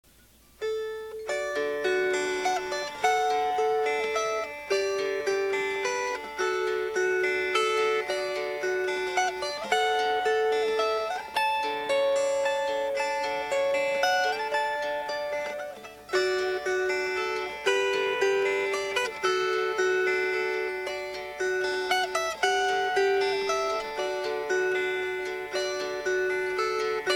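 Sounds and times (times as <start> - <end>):
fingerpicked strings: 0.0 - 27.1.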